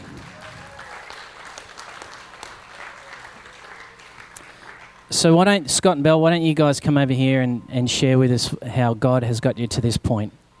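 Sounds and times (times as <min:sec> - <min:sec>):
audience clapping: 0:00.0 - 0:05.1
speech: 0:05.1 - 0:10.4.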